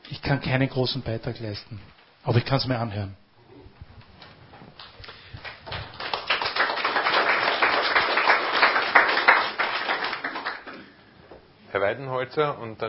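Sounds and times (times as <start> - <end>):
speech: 0.3 - 3.2, 11.9 - 12.8
audience clapping: 4.8 - 11.0.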